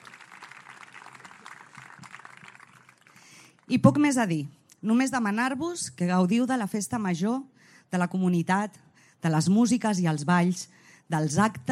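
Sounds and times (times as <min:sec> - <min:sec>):
audience applause: 0:00.0 - 0:03.2
speech: 0:03.7 - 0:11.7.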